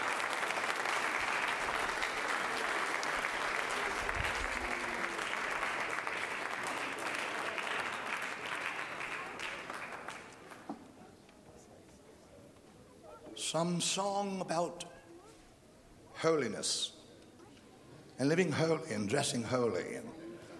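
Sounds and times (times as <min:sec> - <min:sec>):
audience clapping hands: 0:00.0 - 0:11.0
speech: 0:13.5 - 0:14.9, 0:16.2 - 0:17.0, 0:18.2 - 0:20.2.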